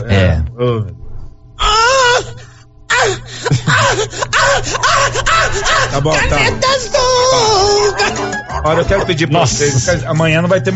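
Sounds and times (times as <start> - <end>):
speech: 0.0 - 1.0, 6.0 - 7.0, 8.7 - 10.7
voice acting a woman moaning in pain from a cramp: 1.6 - 8.2
laughter: 3.0 - 10.4.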